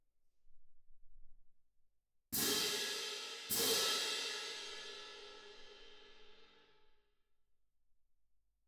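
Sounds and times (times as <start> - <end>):
percussion: 2.3 - 6.8.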